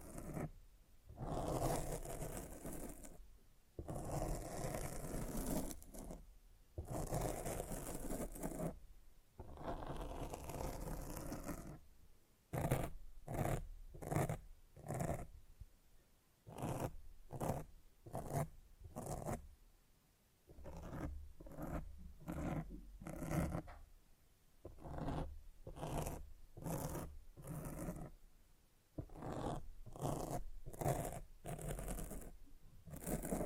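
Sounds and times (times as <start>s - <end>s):
rough raspy scraping across a microphone: 0.0s - 0.5s, 1.1s - 3.2s, 3.8s - 6.2s, 6.8s - 8.8s, 9.4s - 11.8s, 12.5s - 15.3s, 16.5s - 19.4s, 20.5s - 23.7s, 24.7s - 28.2s, 29.0s - 33.4s.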